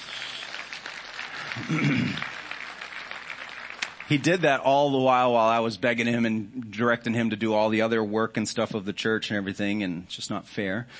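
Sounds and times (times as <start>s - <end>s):
audience applause: 0.0s - 4.6s
speech: 1.6s - 2.3s, 4.1s - 10.9s.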